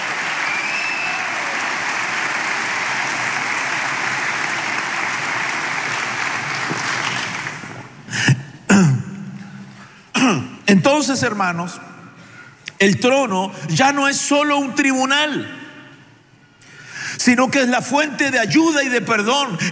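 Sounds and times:
audience clapping hands: 0.0 - 8.1
speech: 10.7 - 11.9, 12.8 - 15.6, 17.2 - 19.6.

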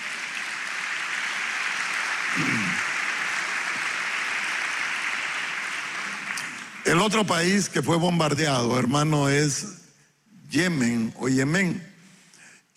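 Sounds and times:
audience applause: 0.0 - 7.1
speech: 6.9 - 9.8, 10.5 - 11.9.

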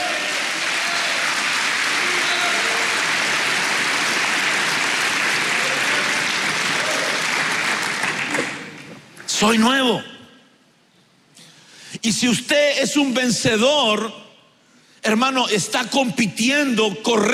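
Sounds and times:
audience clapping hands: 0.0 - 9.3
speech: 9.4 - 10.1, 12.0 - 14.2, 15.1 - 17.3.

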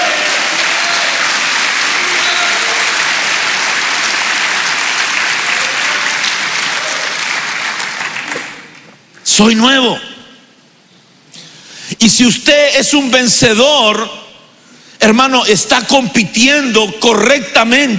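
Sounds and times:
audience clapping hands: 0.0 - 9.0
speech: 9.4 - 10.1, 12.0 - 14.2, 15.0 - 17.9.

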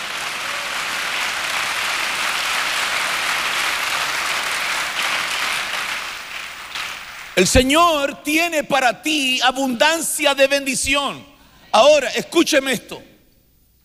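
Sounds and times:
crowd clapping: 0.0 - 7.5
speech: 7.4 - 13.1.

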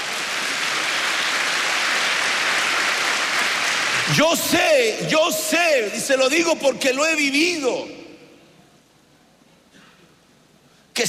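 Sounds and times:
audience applause: 0.0 - 4.3
speech: 4.1 - 8.0.

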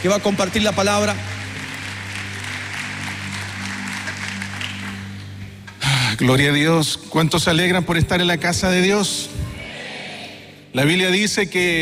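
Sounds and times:
speech: 0.0 - 1.3, 6.2 - 9.5, 10.8 - 11.7
audience applause: 0.0 - 5.4.

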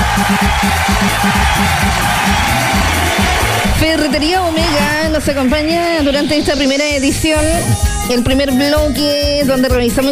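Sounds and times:
applause and cheering: 0.0 - 5.0
speech: 0.3 - 2.4, 4.1 - 10.0.

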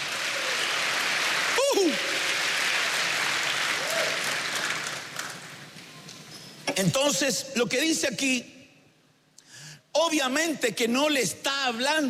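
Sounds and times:
audience applauding: 0.0 - 5.7
speech: 6.8 - 8.6, 10.0 - 12.0.

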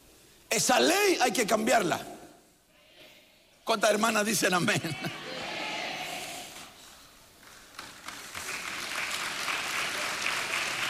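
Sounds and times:
speech: 0.5 - 2.1, 3.7 - 5.2
audience applause: 7.4 - 10.8.

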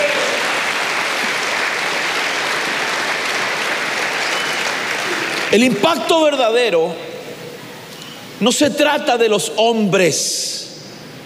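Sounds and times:
audience clapping: 0.0 - 5.8
speech: 5.5 - 7.1, 8.4 - 10.5.

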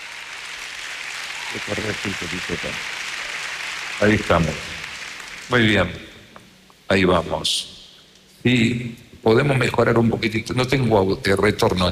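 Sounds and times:
audience applause: 0.0 - 6.0
speech: 1.5 - 3.0, 4.0 - 4.8, 5.5 - 6.0, 6.9 - 7.8, 8.4 - 11.8.

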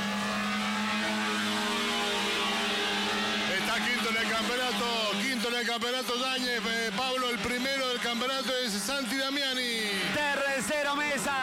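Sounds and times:
Fiat one-make race cars accelerating at full throttle: 0.0 - 11.4
speech: 4.4 - 11.4.

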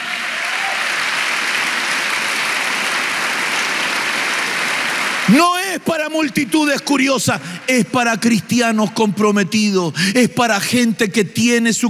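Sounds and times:
church audience applauding: 0.0 - 7.6
speech: 5.3 - 11.8.

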